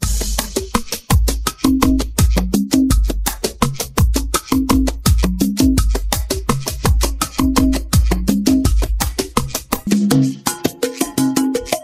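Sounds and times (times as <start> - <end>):
drums: 0.0 - 11.8.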